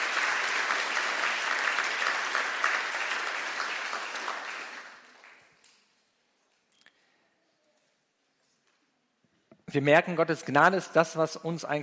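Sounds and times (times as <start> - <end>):
applause: 0.0 - 5.9
speech: 9.7 - 11.8.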